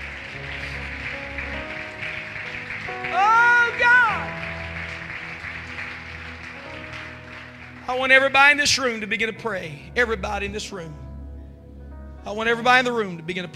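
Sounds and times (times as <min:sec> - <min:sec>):
audience clapping hands: 0:00.0 - 0:09.1
speech: 0:08.0 - 0:11.0, 0:12.2 - 0:13.5.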